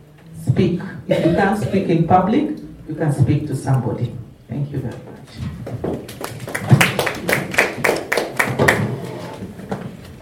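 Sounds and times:
speech: 0.5s - 6.0s
audience clapping: 5.6s - 9.2s.

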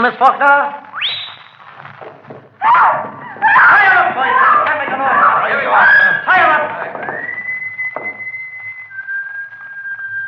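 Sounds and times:
speech: 0.0s - 0.9s
high-pitched whistle signal: 0.9s - 1.7s, 6.9s - 10.2s
voices overlapping: 1.8s - 8.2s.

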